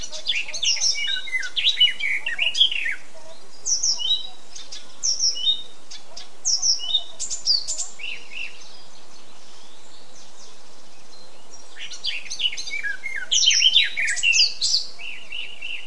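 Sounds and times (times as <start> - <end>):
Eurasian blackcap song: 0.0 - 15.8.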